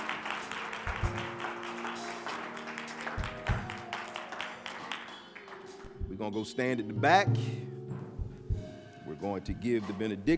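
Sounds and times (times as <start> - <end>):
audience clapping hands: 0.0 - 6.1
speech: 6.2 - 7.7, 9.2 - 10.3.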